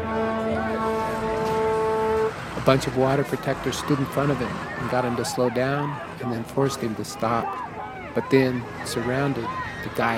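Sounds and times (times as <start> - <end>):
diesel pickup truck horn honking: 0.0 - 8.1
diesel pickup truck engine rumble: 0.0 - 10.1
speech: 2.6 - 10.1.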